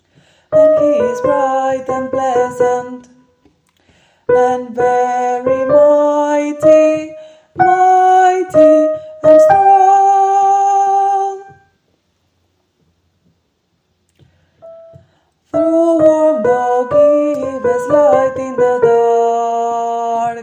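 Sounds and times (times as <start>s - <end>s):
soprano singing: 0.5s - 3.3s, 4.3s - 11.7s, 14.6s - 20.4s.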